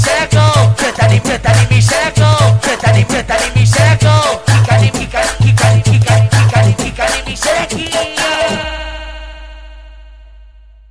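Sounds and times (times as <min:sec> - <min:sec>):
automotivo funk bass: 0:00.0 - 0:08.6.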